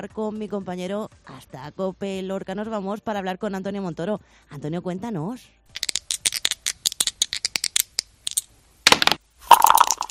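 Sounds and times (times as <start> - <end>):
speech: 0.0 - 5.9
dice rattling in a shaker cup: 5.7 - 10.1.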